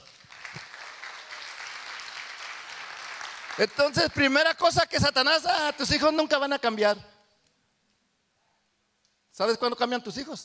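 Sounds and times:
audience applause: 0.0 - 4.4
speech: 3.6 - 7.1, 9.4 - 10.4.

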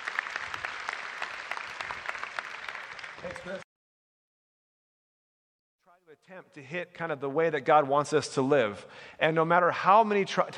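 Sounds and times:
audience applauding a speaker coming to the stage: 0.0 - 3.6
speech: 3.2 - 3.6, 6.1 - 10.5.

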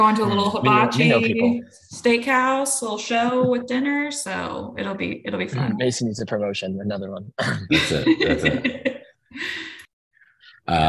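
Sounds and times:
speech: 0.0 - 9.6, 10.7 - 10.8
rough raspy coughing fit: 7.4 - 8.8
laughter: 7.4 - 9.8.

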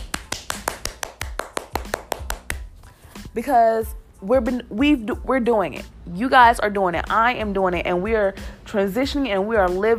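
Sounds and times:
hand claps: 0.0 - 2.7
speech: 3.4 - 9.9.

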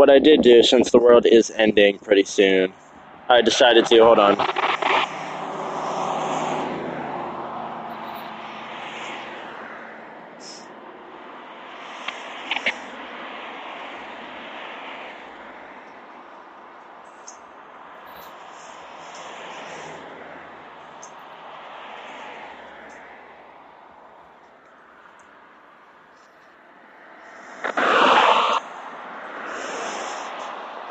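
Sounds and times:
speech: 0.0 - 5.1
traffic hum: 0.0 - 30.8
car passing by on the street: 3.0 - 30.8.

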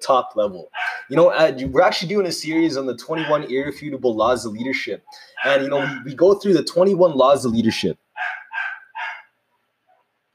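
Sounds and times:
speech: 0.0 - 8.3
dog barking: 0.7 - 1.1, 5.4 - 6.1, 8.2 - 10.1.

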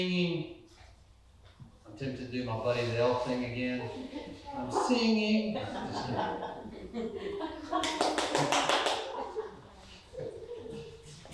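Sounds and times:
speech: 0.0 - 0.6, 2.0 - 8.5
people talking and chuckling: 3.6 - 8.0, 9.0 - 11.3
hand claps: 7.8 - 9.2.

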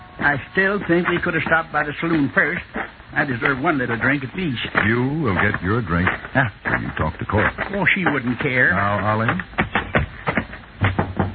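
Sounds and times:
speech: 0.2 - 9.6
knocking on a house door: 9.6 - 11.3.

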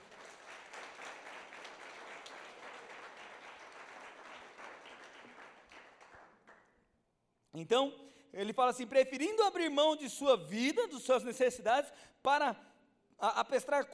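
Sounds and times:
audience applause: 0.0 - 6.7
speech: 7.6 - 13.9.

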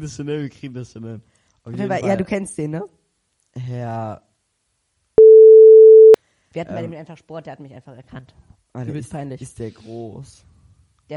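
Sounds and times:
speech: 0.0 - 3.0, 3.6 - 4.3, 6.6 - 10.5
censor bleep over a name: 5.2 - 6.2.

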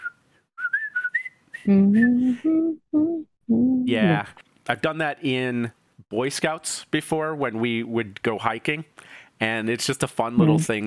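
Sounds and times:
whistled march tune: 0.0 - 2.4
speech: 1.6 - 10.8
lower-pitched vocal notes carrying the march tune: 1.7 - 3.2, 10.4 - 10.7.

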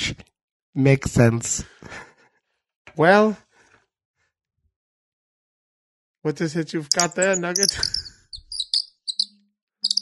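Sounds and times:
speech: 0.8 - 2.1, 3.0 - 3.4, 6.2 - 8.0
sparrow chirping: 6.8 - 9.9.

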